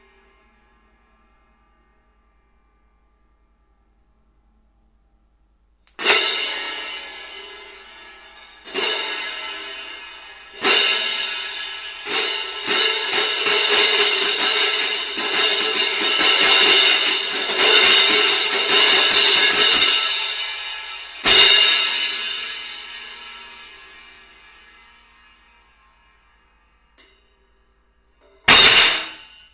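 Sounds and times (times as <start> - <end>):
cymbals: 6.0 - 29.5.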